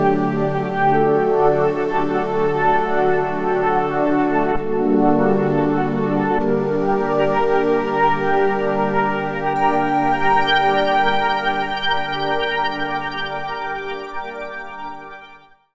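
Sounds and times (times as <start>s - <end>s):
synth pad: 0.0s - 15.2s.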